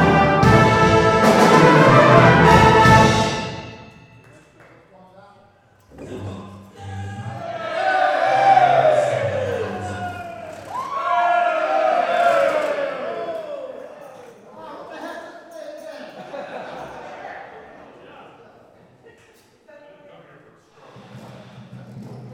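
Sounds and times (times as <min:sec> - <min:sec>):
brass instruments: 0:00.0 - 0:04.3, 0:06.0 - 0:13.2
laughter: 0:06.1 - 0:10.7, 0:14.0 - 0:19.2.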